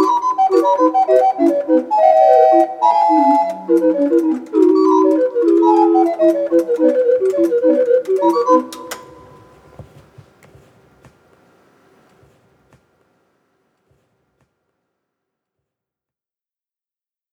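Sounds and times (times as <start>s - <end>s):
mechanical organ playing in a museum: 0.0s - 9.8s.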